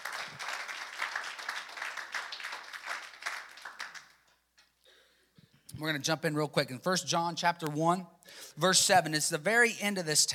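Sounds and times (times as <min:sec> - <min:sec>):
crowd clapping: 0:00.0 - 0:04.4
speech: 0:05.8 - 0:10.3.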